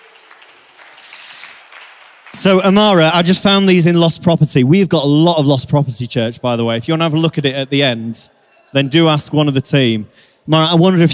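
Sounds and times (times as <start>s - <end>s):
audience applause: 0.0s - 3.3s
speech: 2.3s - 11.1s.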